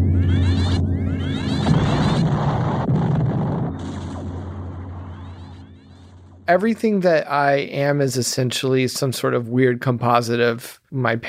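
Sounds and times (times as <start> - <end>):
steady low rumble: 0.0 - 7.0
Battlestar Galactica mega laser turrets firing: 0.3 - 6.5
speech: 6.5 - 11.2.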